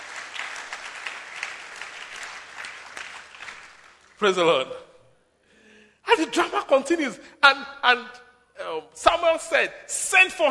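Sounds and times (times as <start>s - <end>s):
audience clapping: 0.0s - 4.6s
speech: 4.2s - 4.8s, 6.1s - 10.4s.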